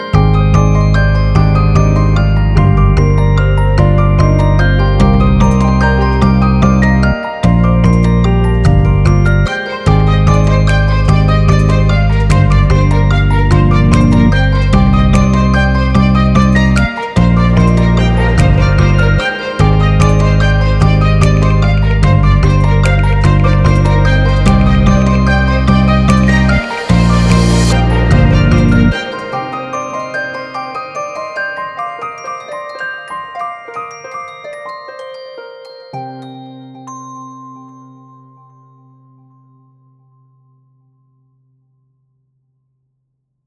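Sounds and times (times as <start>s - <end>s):
trailer music: 0.1s - 31.6s.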